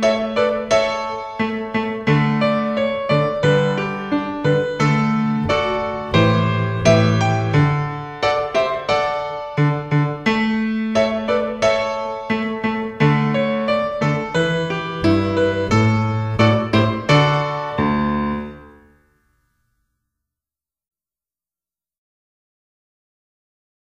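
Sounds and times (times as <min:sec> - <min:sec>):
processional accompaniment music: 0:00.1 - 0:18.8.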